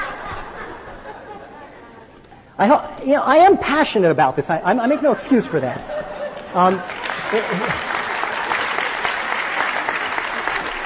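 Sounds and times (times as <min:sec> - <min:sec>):
laughter: 0:00.0 - 0:02.2, 0:04.7 - 0:10.8
speech: 0:02.6 - 0:07.9
audience applause: 0:06.3 - 0:10.8.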